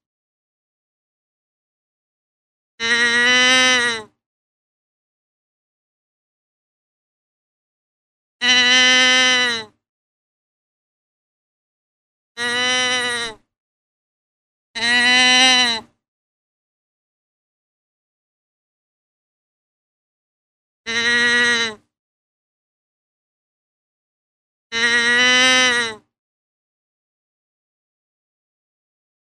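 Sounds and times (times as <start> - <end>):
deer bleating: 2.8 - 4.1, 8.4 - 9.7, 12.4 - 13.4, 14.8 - 15.9, 20.9 - 21.8, 24.8 - 26.0.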